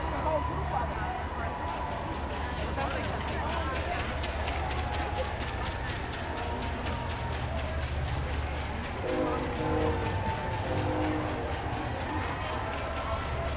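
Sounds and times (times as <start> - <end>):
protest crowd roaring: 0.0 - 13.5
fast regular pulsing beat: 6.6 - 13.5.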